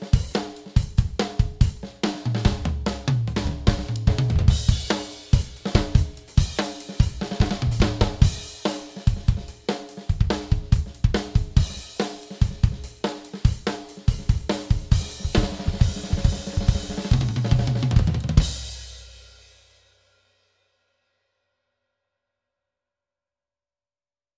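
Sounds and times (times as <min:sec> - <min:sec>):
drum kit beat performance: 0:00.0 - 0:19.4.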